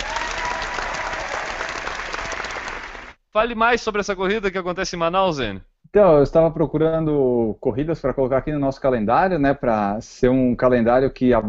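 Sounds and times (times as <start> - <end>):
studio audience applause: 0.0 - 3.2
speech: 3.4 - 11.4.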